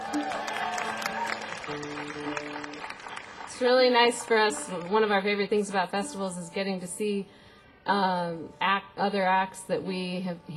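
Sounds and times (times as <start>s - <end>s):
audience applause: 0.0s - 5.2s
speech: 1.7s - 2.4s, 3.6s - 10.5s.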